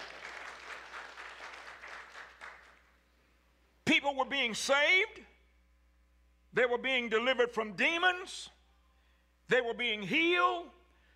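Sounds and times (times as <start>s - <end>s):
audience clapping hands: 0.0s - 2.9s
speech: 4.0s - 5.3s, 6.6s - 8.6s, 9.5s - 10.8s.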